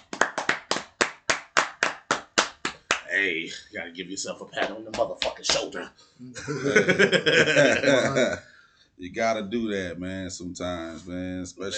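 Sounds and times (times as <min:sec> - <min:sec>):
round of applause: 0:00.0 - 0:03.1
speech: 0:03.2 - 0:11.7
laughter: 0:06.4 - 0:08.4.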